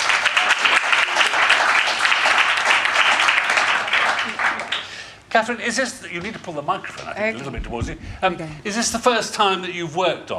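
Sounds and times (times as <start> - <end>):
audience applause welcoming a guest: 0.0 - 5.2
speech: 5.3 - 10.3.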